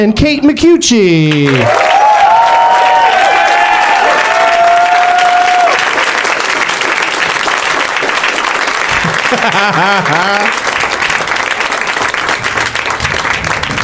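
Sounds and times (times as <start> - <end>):
speech: 0.0 - 2.0, 9.4 - 10.6
audience applause for arriving guests: 1.4 - 13.8
cheers and whoops: 1.5 - 6.0
laughter: 8.9 - 10.7.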